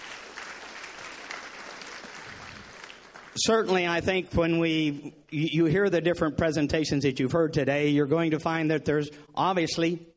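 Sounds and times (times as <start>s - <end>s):
audience applause: 0.0s - 3.8s
speech: 3.4s - 10.1s.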